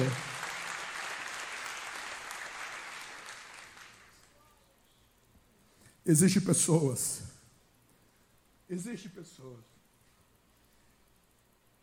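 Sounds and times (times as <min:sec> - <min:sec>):
audience applauding: 0:00.0 - 0:04.4
speech: 0:06.0 - 0:07.3, 0:08.7 - 0:09.8.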